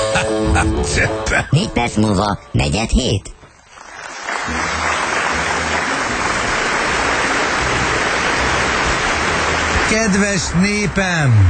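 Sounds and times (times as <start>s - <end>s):
speech: 0.6s - 3.4s, 9.9s - 11.4s
audience applause: 3.6s - 11.4s.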